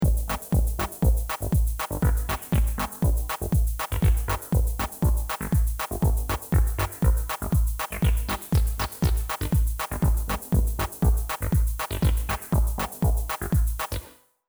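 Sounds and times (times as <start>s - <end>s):
TD-3 pattern: 0.0s - 14.2s.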